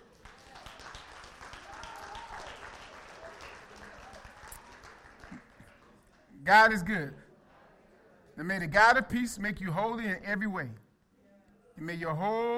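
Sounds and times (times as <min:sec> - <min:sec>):
audience clapping: 0:00.0 - 0:06.3
speech: 0:06.5 - 0:07.2, 0:08.4 - 0:10.8, 0:11.8 - 0:12.5.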